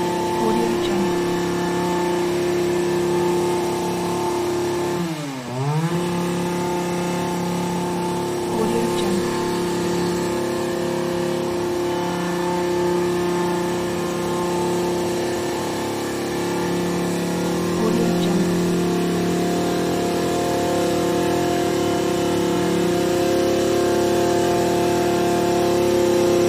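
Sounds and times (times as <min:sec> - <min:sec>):
motor chainsaw trimmer: 0:00.0 - 0:26.4.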